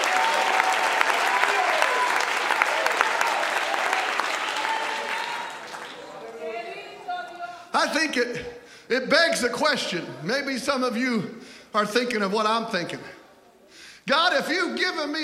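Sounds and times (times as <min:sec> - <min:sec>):
large audience applause: 0:00.0 - 0:07.1
speech: 0:07.8 - 0:13.2, 0:14.1 - 0:15.2.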